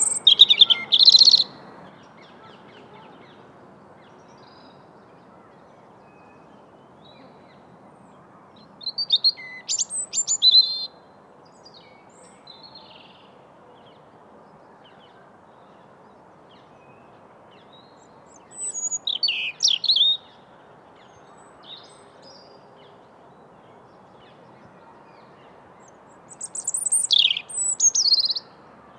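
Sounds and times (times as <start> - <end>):
European robin song: 0.0 - 1.5, 8.9 - 10.9, 18.5 - 20.2, 26.4 - 28.4.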